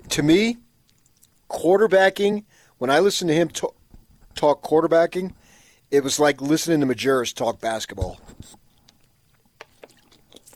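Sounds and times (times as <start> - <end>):
speech: 0.2 - 0.6, 1.5 - 3.8, 4.4 - 8.6
person drinking a sip of water: 8.3 - 10.5.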